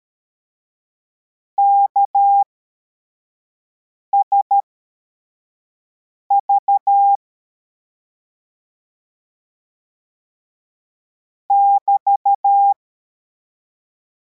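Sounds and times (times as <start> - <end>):
CW morse code beeps: 1.6 - 2.5, 6.3 - 7.2, 11.5 - 12.8.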